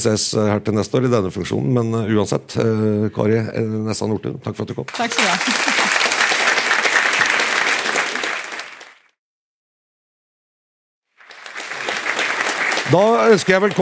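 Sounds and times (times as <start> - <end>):
speech: 0.0 - 5.8, 12.9 - 13.8
audience applause: 4.9 - 9.1, 11.2 - 13.8
laughter: 5.0 - 6.7.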